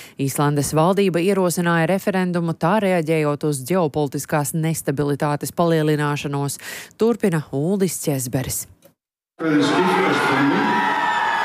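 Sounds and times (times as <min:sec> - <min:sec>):
speech: 0:00.2 - 0:08.8, 0:09.4 - 0:10.7
crowd of referendum opponents cheering the results in Iceland: 0:09.4 - 0:11.4.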